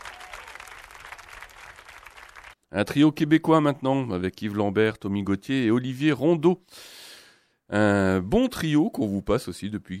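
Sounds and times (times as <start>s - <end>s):
audience applauding a violinist: 0.0s - 2.6s
speech: 2.7s - 7.0s, 7.7s - 9.9s.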